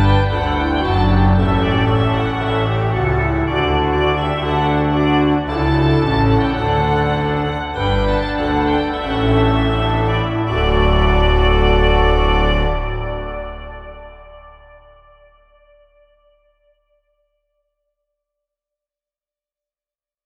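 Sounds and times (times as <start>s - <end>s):
organ piece: 0.0s - 16.0s.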